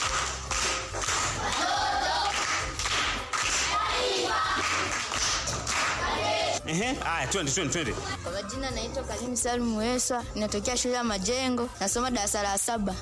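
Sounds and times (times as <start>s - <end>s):
group applauding a man at a school gathering: 0.0s - 6.6s
speech: 6.7s - 13.0s.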